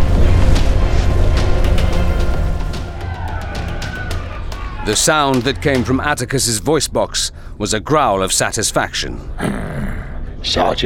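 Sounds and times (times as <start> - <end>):
starship reactor explosion: 0.0 - 6.4
speech: 4.9 - 10.8.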